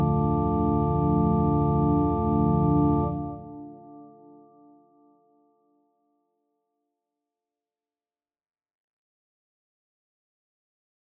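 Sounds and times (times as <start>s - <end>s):
analog synthesizer: 0.0s - 4.0s.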